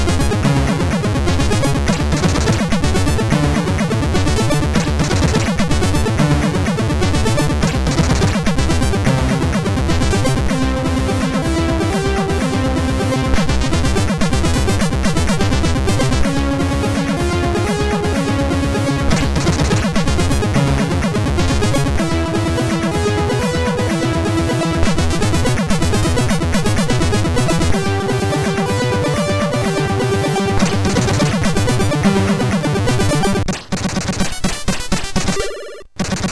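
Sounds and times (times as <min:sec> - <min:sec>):
MOS 6581 SID chip game music: 0:00.0 - 0:36.2.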